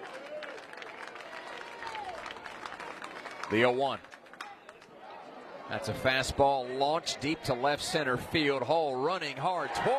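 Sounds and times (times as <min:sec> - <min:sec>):
crowd clapping: 0:00.0 - 0:05.0
baseball stadium crowd cheering: 0:00.0 - 0:09.9
speech: 0:03.5 - 0:04.1, 0:05.7 - 0:09.9.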